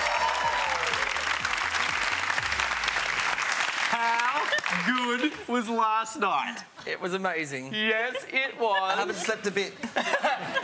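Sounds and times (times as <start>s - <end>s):
studio audience applause on a family game show: 0.0s - 5.7s
speech: 4.7s - 10.6s
laughter: 7.9s - 10.6s.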